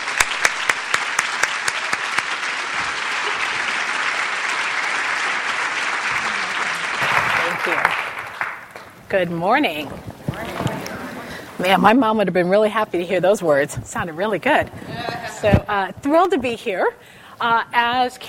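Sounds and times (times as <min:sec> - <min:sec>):
audience applause welcoming a speaker onto the stage: 0:00.0 - 0:09.0
speech: 0:09.1 - 0:10.1, 0:11.6 - 0:18.2.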